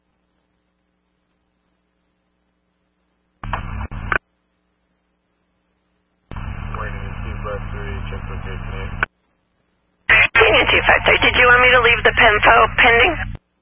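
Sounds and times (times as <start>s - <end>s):
harsh hissing radio static: 6.3s - 9.1s, 10.1s - 13.4s
garbled voice in radio static: 10.1s - 13.3s
speech: 12.2s - 13.2s.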